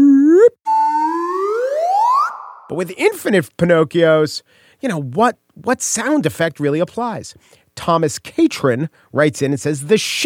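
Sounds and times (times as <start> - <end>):
slide whistle gliding up: 0.0 - 2.7
speech: 2.8 - 10.2.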